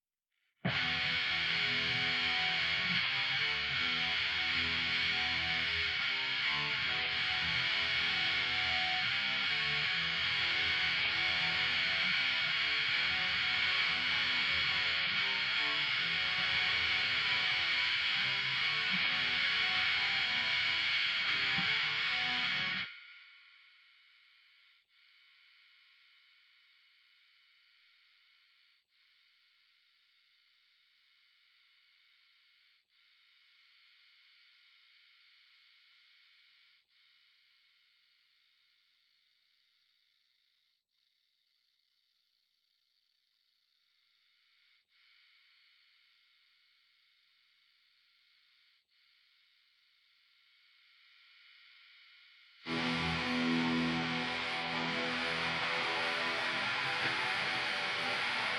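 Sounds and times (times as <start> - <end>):
guitar: 0.6 - 24.0, 52.6 - 58.5.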